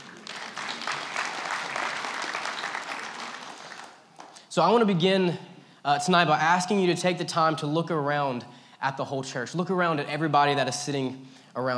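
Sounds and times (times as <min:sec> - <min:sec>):
audience applause: 0:00.0 - 0:04.4
speech: 0:04.5 - 0:11.7.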